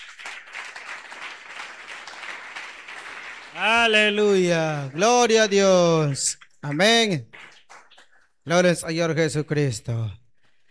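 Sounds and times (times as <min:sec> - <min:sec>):
audience applauding: 0:00.0 - 0:08.3
speech: 0:03.6 - 0:07.5, 0:08.5 - 0:10.2.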